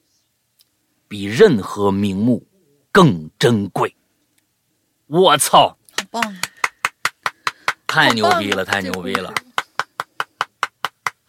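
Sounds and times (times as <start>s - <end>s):
speech: 1.1s - 4.0s, 5.1s - 6.5s, 7.9s - 9.4s
hand claps: 5.9s - 11.2s.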